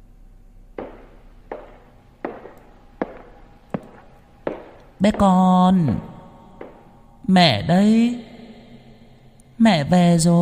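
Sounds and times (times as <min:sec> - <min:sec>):
footsteps on a wooden floor: 0:00.8 - 0:07.0
speech: 0:05.0 - 0:06.1, 0:07.3 - 0:08.3, 0:09.6 - 0:10.4.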